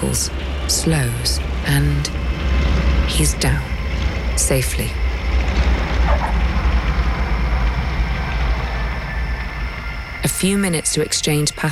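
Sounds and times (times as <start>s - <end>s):
light aircraft engine droning while taxiing and taking off: 0.0s - 11.7s
speech: 0.1s - 3.7s, 4.4s - 5.0s, 10.4s - 11.7s.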